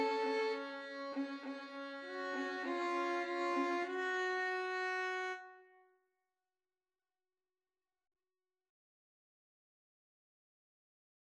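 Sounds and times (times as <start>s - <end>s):
violin trio: 0.0s - 5.5s.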